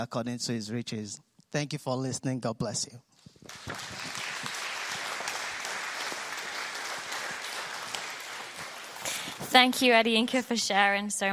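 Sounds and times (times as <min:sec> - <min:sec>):
speech: 0:00.0 - 0:04.2, 0:09.4 - 0:11.3
audience applause: 0:03.4 - 0:09.6.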